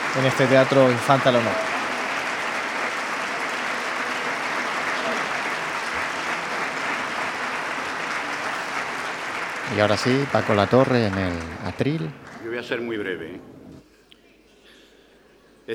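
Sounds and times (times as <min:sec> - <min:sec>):
long applause from audience in theater: 0:00.0 - 0:12.8
speech: 0:00.2 - 0:01.7, 0:09.7 - 0:13.6.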